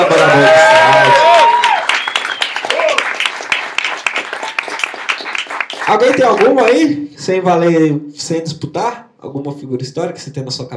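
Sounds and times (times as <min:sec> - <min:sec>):
audience whooping and cheering: 0:00.0 - 0:04.3
audience applause: 0:00.0 - 0:06.8
speech: 0:05.9 - 0:10.7.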